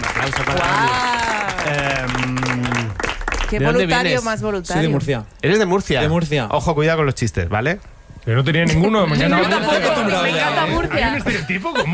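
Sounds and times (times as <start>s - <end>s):
studio audience applause: 0.0s - 4.0s
speech: 0.2s - 2.4s, 3.5s - 11.9s
laughter: 8.7s - 11.9s.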